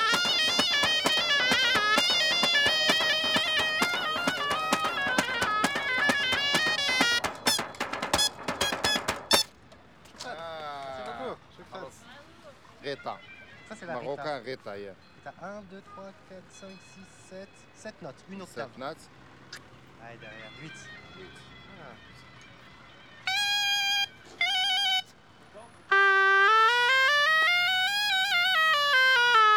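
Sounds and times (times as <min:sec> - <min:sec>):
traditional rita flute in Morocco: 0:00.0 - 0:09.5, 0:20.2 - 0:25.2, 0:25.9 - 0:29.5.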